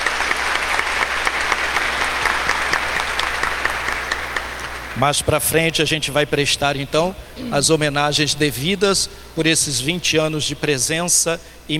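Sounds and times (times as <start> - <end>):
applause: 0.0 - 5.0
speech: 5.0 - 11.7.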